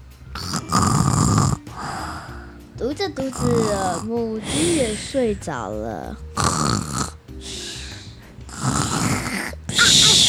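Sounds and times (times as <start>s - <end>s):
person imitating pig-like snoring: 0.4s - 2.5s, 3.2s - 5.4s, 6.4s - 10.2s
speech: 2.9s - 6.8s.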